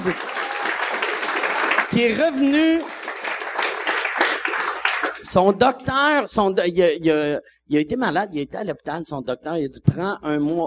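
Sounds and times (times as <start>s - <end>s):
speech: 0.0s - 0.3s, 2.0s - 3.0s, 5.3s - 10.6s
audience applause: 0.0s - 5.3s.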